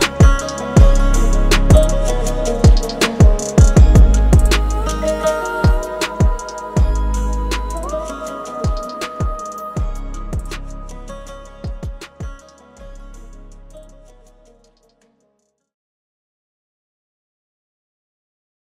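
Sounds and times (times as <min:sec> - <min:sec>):
Turkish saz over a trap rap beat: 0:00.0 - 0:14.8.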